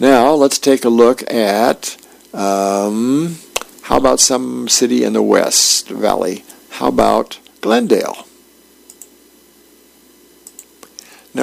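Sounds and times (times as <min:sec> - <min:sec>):
speech: 0:00.0 - 0:08.3
quiet hum: 0:00.0 - 0:11.4
computer keyboard clicks typing a web address: 0:08.9 - 0:09.1, 0:10.4 - 0:11.0.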